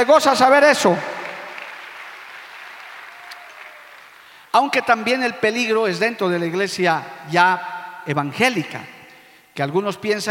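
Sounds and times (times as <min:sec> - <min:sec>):
speech: 0:00.0 - 0:01.2, 0:04.6 - 0:09.0, 0:09.6 - 0:10.2
audience applause: 0:01.1 - 0:04.4.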